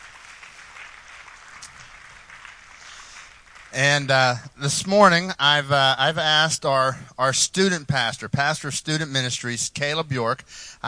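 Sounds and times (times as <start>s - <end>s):
audience applause: 0.0s - 4.2s
speech: 3.7s - 10.8s.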